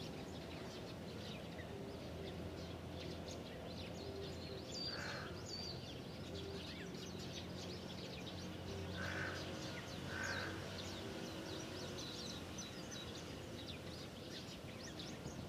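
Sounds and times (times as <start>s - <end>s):
many kinds of birds chirping in a big park tree: 0.0s - 15.4s
harsh crow-like caws: 4.9s - 5.4s, 9.0s - 9.5s, 10.1s - 10.6s.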